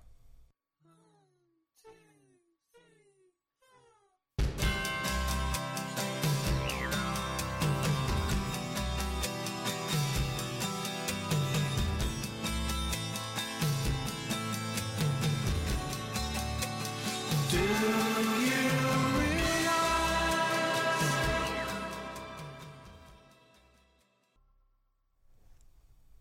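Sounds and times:
rock song played from a record: 4.4s - 23.3s.

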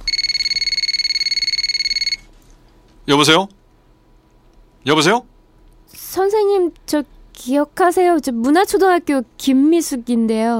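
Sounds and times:
telephone ringing on outgoing call: 0.0s - 2.3s
speech: 3.1s - 3.6s, 4.8s - 5.3s, 5.9s - 10.5s.

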